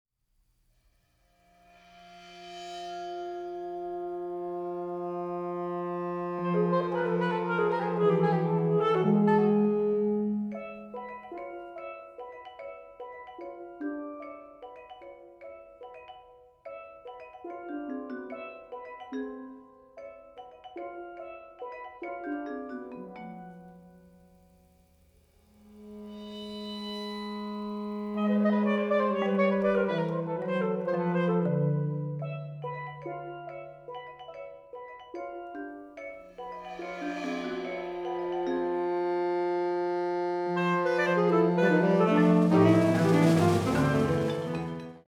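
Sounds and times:
march music: 0:03.6 - 0:12.0, 0:25.8 - 0:33.6, 0:36.2 - 0:45.0.

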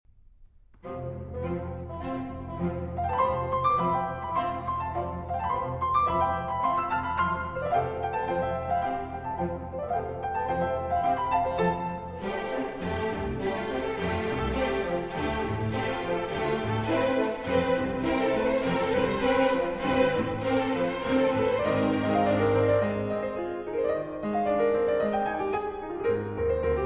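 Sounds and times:
piano concerto: 0:00.2 - 0:26.8.

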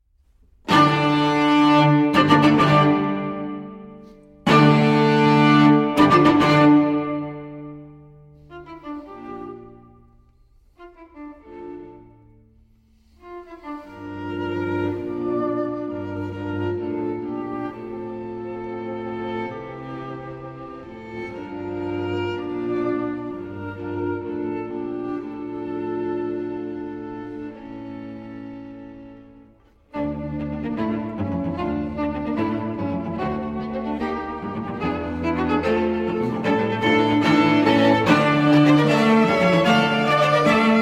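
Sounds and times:
string quartet playing an allegro in D minor: 0:00.4 - 0:40.7.

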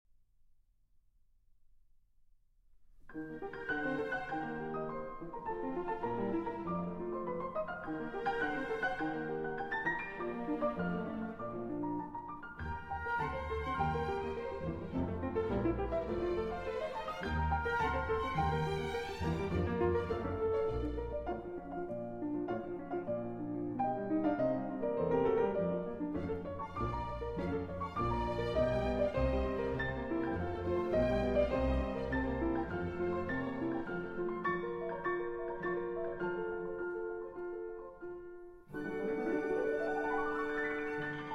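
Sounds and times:
piano concerto in B-flat major: 0:03.0 - 0:41.3.

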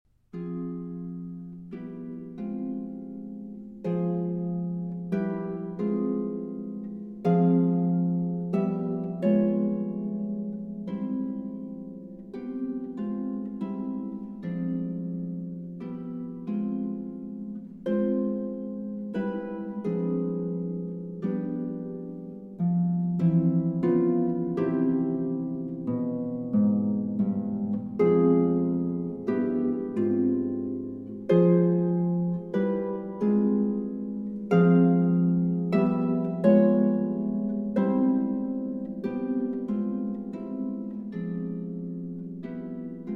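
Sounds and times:
harp suite andante: 0:00.1 - 0:43.1.

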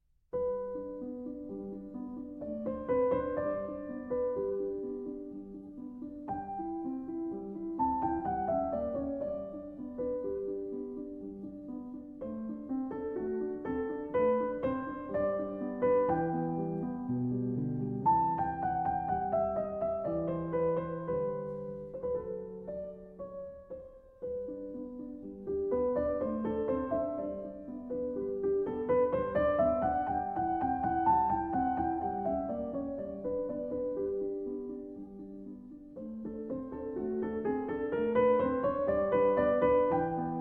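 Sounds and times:
piano sonata in C major: 0:00.0 - 0:40.3.

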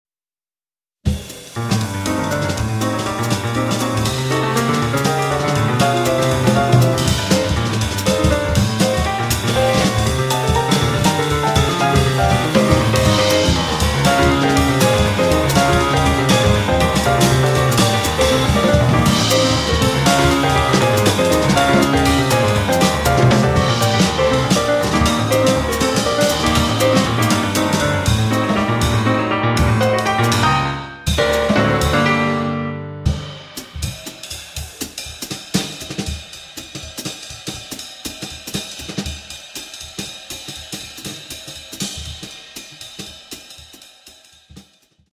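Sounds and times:
jazz ensemble playing in G minor: 0:01.6 - 0:33.9.

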